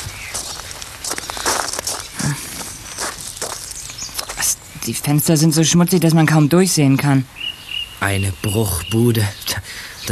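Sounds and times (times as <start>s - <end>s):
footsteps of several people walking around to the back of a rundown shack: 0.0s - 4.5s
speech: 4.8s - 10.0s.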